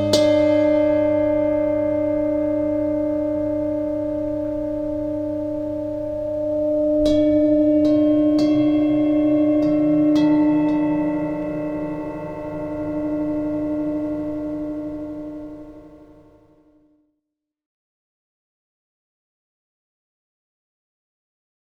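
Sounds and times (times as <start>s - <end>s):
Tibetan singing bowls: 0.0s - 16.6s.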